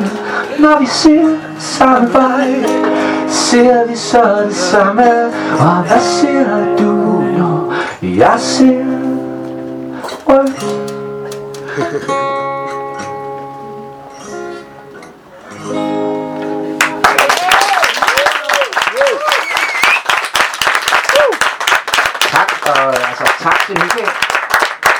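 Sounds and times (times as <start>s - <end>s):
person singing: 0.0s - 10.9s
speech: 0.6s - 6.9s, 8.1s - 8.8s, 11.9s - 12.4s
audience applause: 16.8s - 24.9s
audience cheering and whooping: 16.9s - 21.7s.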